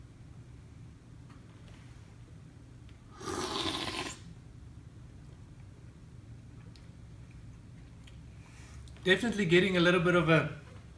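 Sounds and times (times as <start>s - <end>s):
person slurping a drink while tasting: 3.1s - 4.3s
speech: 9.0s - 10.6s.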